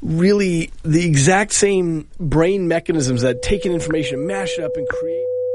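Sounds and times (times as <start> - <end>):
speech: 0.1 - 5.2
radio top-of-the-hour time tone: 2.4 - 5.4.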